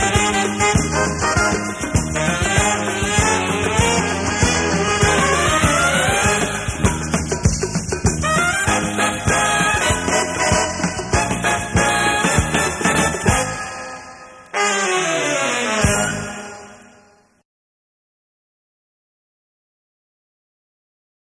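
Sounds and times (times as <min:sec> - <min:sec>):
dance music: 0:00.0 - 0:16.4.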